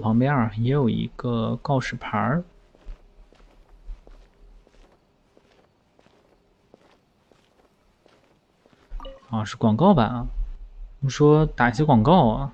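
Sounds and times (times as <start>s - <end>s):
speech: 0.0s - 2.5s, 9.3s - 10.4s, 11.0s - 12.5s
footsteps of game character walking: 0.9s - 9.3s.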